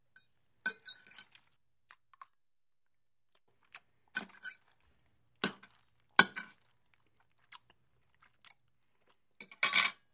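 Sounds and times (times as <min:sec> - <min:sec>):
person eating with a fork: 0:00.2 - 0:02.4, 0:03.6 - 0:09.7
person chewing noisily: 0:01.3 - 0:02.4, 0:03.3 - 0:09.4.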